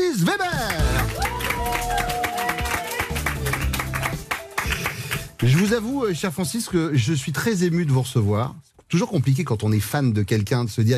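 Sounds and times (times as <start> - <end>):
studio audience applause: 0.0 - 5.8
speech: 5.4 - 10.9.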